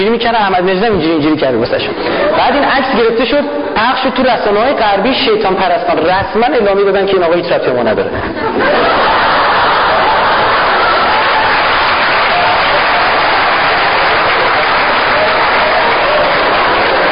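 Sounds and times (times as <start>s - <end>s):
speech: 0.0s - 9.2s
laughter: 1.8s - 2.9s, 8.1s - 13.0s
audience applause: 8.7s - 17.1s.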